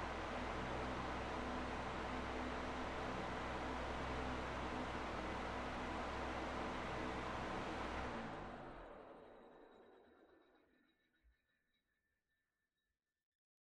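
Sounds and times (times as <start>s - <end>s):
electric fan on high: 0.0s - 9.4s.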